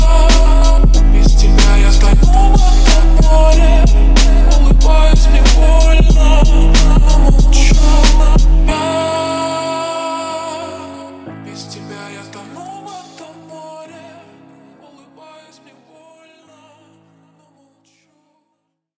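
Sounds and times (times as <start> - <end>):
39 41 44Hz low bass tones: 0.0 - 8.7.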